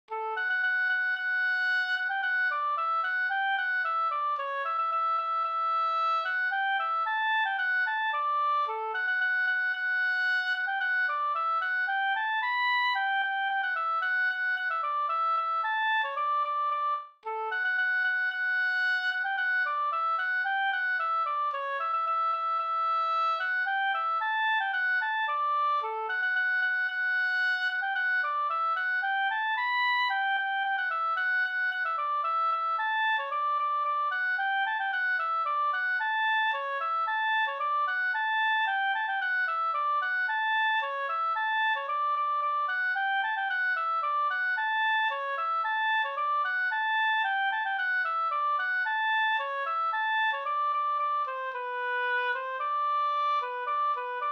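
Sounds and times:
polka music: 0.0s - 54.3s.

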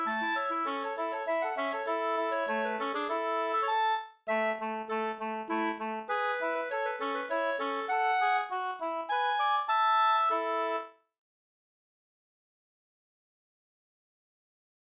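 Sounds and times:
slangpolska folk dance tune: 0.0s - 10.9s.

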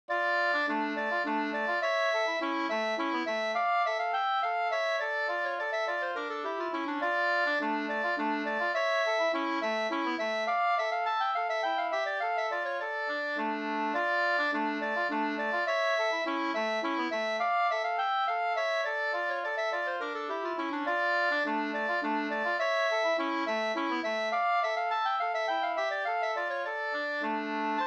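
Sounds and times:
two-part slangpolska folk dance tune: 0.1s - 27.8s.

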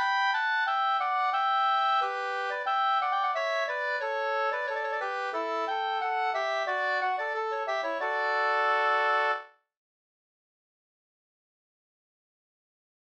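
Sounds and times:
folk walking tune: 0.0s - 9.5s.

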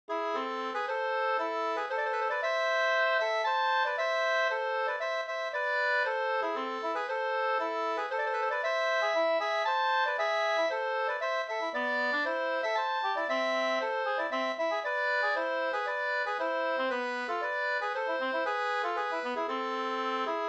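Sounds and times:
polska dance tune: 0.1s - 20.4s.

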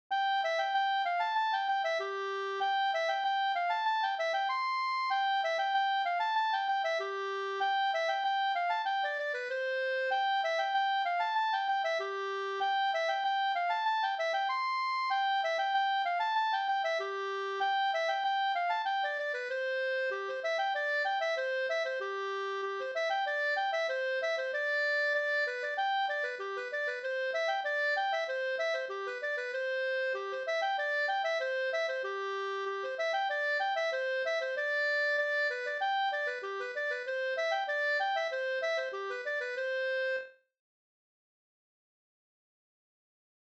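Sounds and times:
halling folk dance music: 0.2s - 40.4s.

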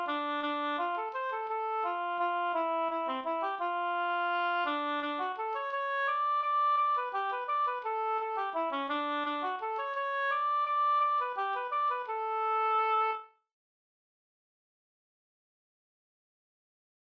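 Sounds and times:
waltz music: 0.0s - 13.2s.

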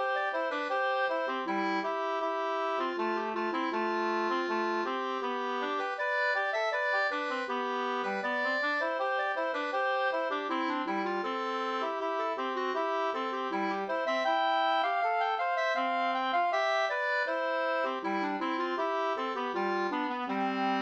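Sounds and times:
two-part wedding march: 0.1s - 20.7s.

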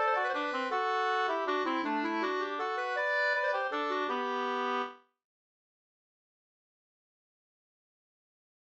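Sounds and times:
waltz in two parts: 0.0s - 4.9s.

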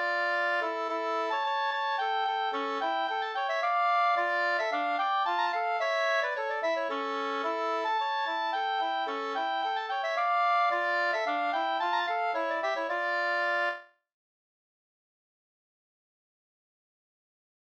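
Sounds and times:
Slangpolska folk dance tune: 0.0s - 13.8s.

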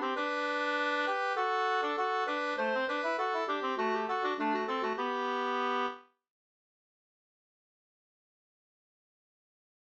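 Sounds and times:
folk walking tune: 0.0s - 6.0s.

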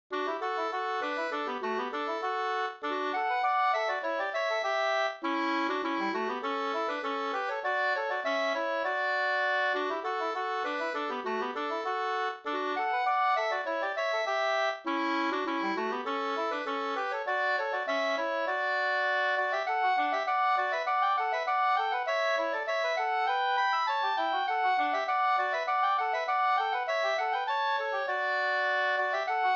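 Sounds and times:
polka: 0.1s - 29.5s.

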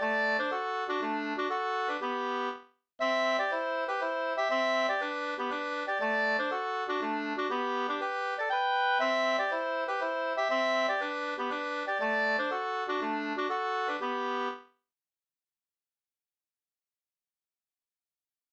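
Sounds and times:
two-part polska folk dance tune: 0.0s - 14.6s.

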